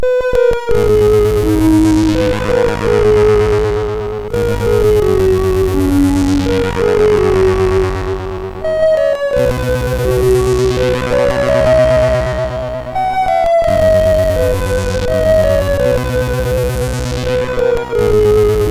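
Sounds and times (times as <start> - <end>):
little echo from MOS6581 sound chip: 0.7 - 18.6.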